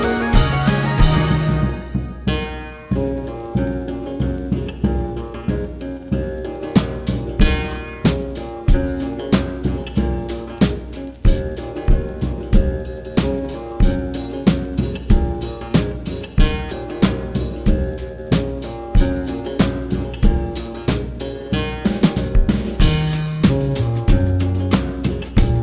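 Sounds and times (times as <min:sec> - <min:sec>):
Asian sound effects: 0:00.0 - 0:02.7
country-sounding music: 0:00.0 - 0:25.6.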